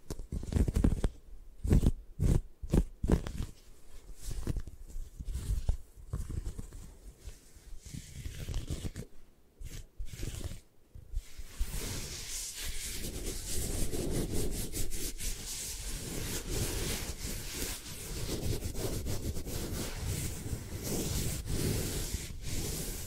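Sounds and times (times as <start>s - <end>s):
scratching: 0.1s - 23.0s
eye massage sounds: 5.3s - 23.0s.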